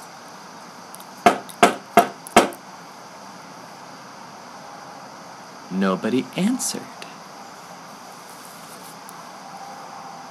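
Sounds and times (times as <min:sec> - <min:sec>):
faint steady hiss: 0:00.0 - 0:10.3
knocking on a wooden door: 0:01.3 - 0:02.6
speech: 0:05.7 - 0:07.0.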